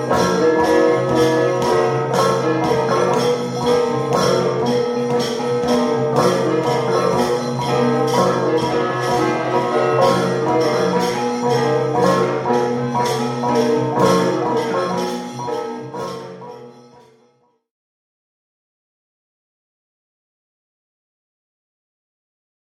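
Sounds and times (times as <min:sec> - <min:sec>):
Central Highlands bronze gong: 0:00.0 - 0:16.6.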